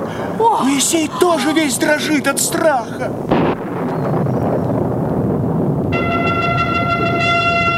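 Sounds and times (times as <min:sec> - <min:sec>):
rolling thunder: 0:00.0 - 0:07.7
speech: 0:00.4 - 0:04.2
trumpet blast: 0:05.9 - 0:07.7.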